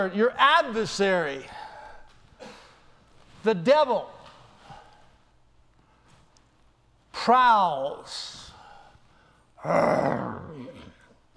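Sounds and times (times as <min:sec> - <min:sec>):
speech: 0:00.0 - 0:01.6, 0:03.4 - 0:04.2, 0:07.2 - 0:08.4, 0:09.6 - 0:10.6
person imitating a low growling roar with the voice: 0:09.6 - 0:11.0.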